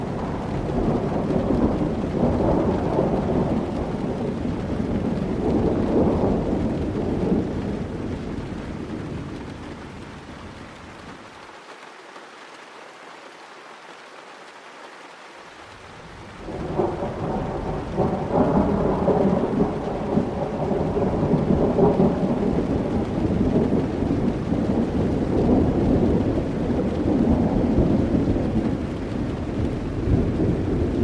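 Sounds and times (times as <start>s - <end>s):
rumbling thunder: 0.0s - 9.6s, 16.4s - 31.0s
rain: 0.0s - 31.0s.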